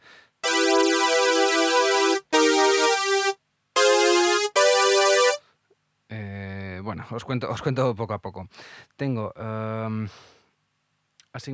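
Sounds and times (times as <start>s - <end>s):
synthetic bass synthesizer patch playing: 0.4s - 5.4s
speech: 7.1s - 10.4s, 11.4s - 11.5s.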